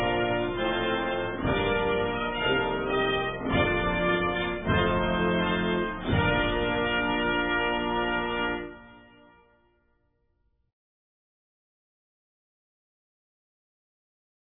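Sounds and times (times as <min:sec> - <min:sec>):
national anthem: 0:00.0 - 0:09.6.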